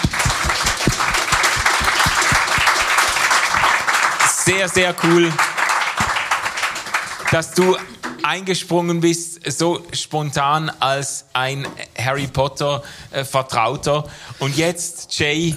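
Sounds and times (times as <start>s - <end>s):
audience applause: 0.0s - 8.2s
speech: 4.6s - 5.5s, 7.3s - 15.5s.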